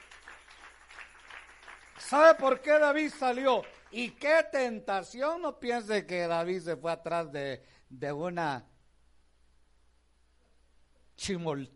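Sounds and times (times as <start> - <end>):
audience clapping: 0.0 - 4.4
speech: 2.1 - 8.7, 11.2 - 11.7.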